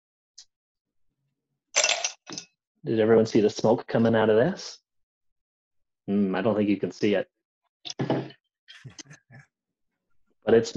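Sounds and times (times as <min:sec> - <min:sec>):
ice cubes clinking into a glass: 0:01.8 - 0:02.4
speech: 0:02.8 - 0:04.8, 0:06.1 - 0:09.2, 0:10.4 - 0:10.7.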